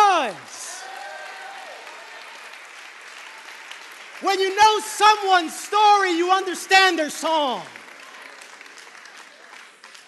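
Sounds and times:
audience clapping hands: 0.0s - 10.0s
speech: 4.2s - 7.8s.

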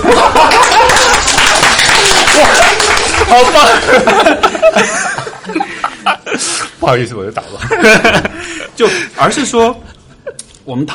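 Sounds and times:
laughter: 0.0s - 6.8s, 7.4s - 9.0s
hand clapping: 0.4s - 3.6s
speech: 3.3s - 4.9s, 6.8s - 9.9s, 10.7s - 10.9s.

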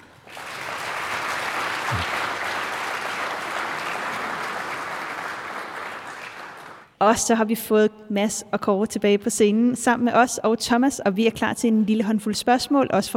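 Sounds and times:
audience applause: 0.0s - 6.9s
speech: 7.0s - 13.1s.

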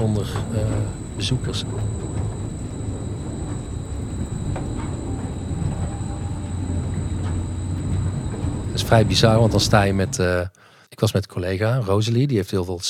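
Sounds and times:
speech: 0.0s - 2.2s, 8.8s - 12.8s
carousel mechanism running without music: 0.0s - 10.3s.

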